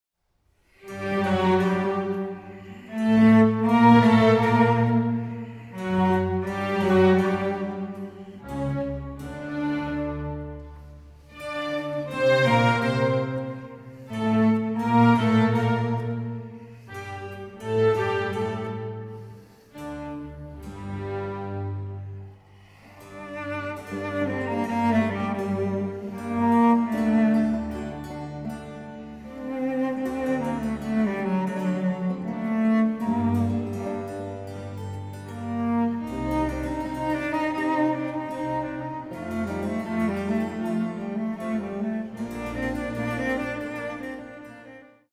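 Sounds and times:
cello concerto in D major: 0.6 - 45.1.

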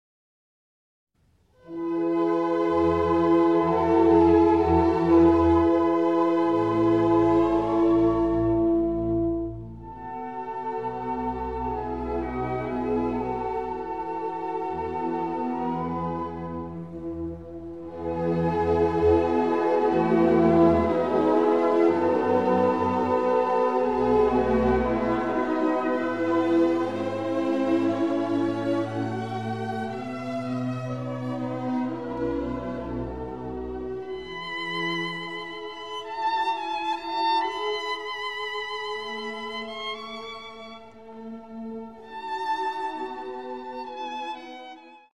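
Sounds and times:
violin and orchestra in E major: 1.5 - 45.1.

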